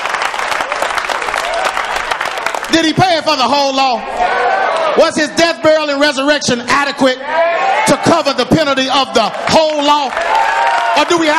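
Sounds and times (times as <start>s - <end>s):
crowd clapping: 0.0s - 3.7s, 8.8s - 11.3s
speech: 2.7s - 11.3s.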